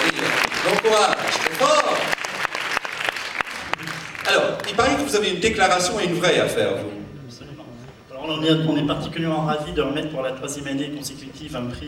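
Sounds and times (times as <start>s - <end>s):
audience clapping: 0.0s - 5.3s
speech: 4.8s - 7.0s, 8.3s - 11.8s.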